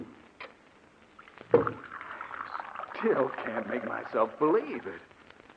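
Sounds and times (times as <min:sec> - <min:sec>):
coffee being poured into a cup: 0:01.5 - 0:05.0
speech: 0:03.1 - 0:05.1.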